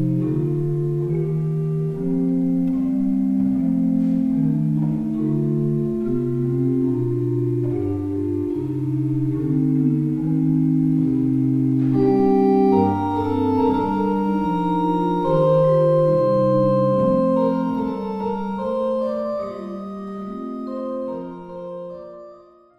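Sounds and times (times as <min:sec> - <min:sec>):
pipe organ: 0:00.0 - 0:22.7.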